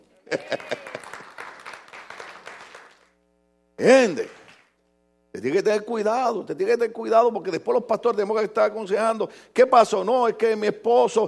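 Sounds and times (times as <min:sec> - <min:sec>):
laughter: 0:00.2 - 0:01.3
speech: 0:00.3 - 0:00.8, 0:03.8 - 0:04.4, 0:05.4 - 0:11.2
audience applause: 0:00.3 - 0:03.1.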